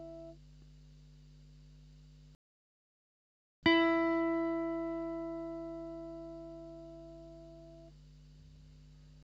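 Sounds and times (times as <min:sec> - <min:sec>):
electric guitar: 0:03.6 - 0:07.9.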